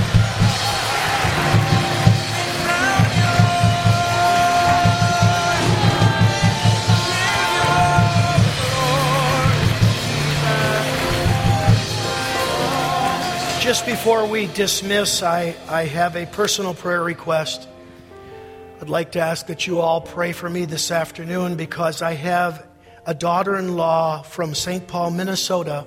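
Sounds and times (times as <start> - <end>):
audience clapping: 0.0 - 15.2
speech: 13.7 - 17.7, 18.8 - 25.8.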